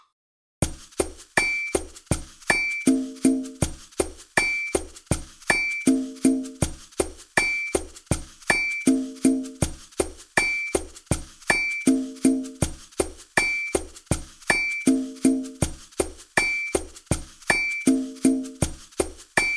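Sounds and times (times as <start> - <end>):
Latin groove: 0.6 - 19.5.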